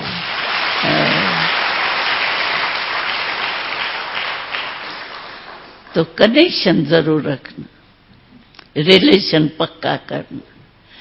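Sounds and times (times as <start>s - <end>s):
audience applause: 0.0s - 6.0s
speech: 6.0s - 7.8s, 8.8s - 10.5s.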